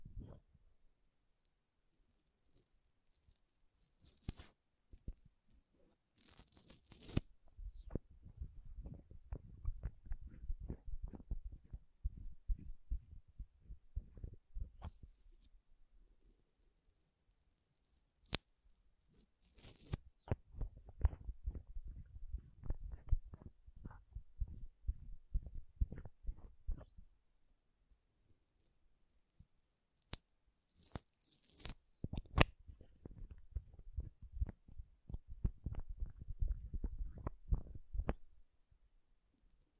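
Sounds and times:
makeup tapping and scratching: 6.2 - 15.5, 19.2 - 27.0, 30.9 - 38.4.

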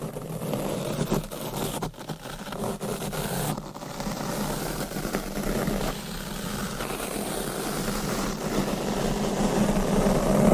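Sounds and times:
scratching and brushing on a microphone: 0.0 - 10.5.

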